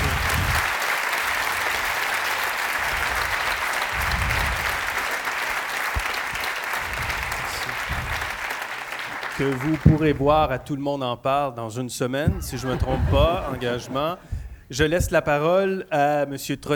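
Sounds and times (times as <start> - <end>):
audience applause: 0.0 - 10.7, 12.3 - 15.4
laughter: 1.9 - 16.7
speech: 9.4 - 16.7.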